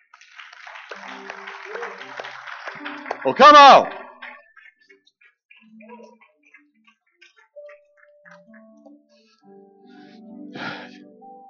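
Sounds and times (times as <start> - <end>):
audience hand clapping: 0.0 - 8.9
speech: 1.0 - 4.0.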